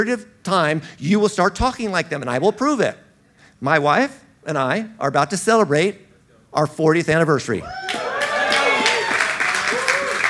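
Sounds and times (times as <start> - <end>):
speech: 0.0 - 3.0, 3.6 - 7.8
audience applause: 7.9 - 10.2.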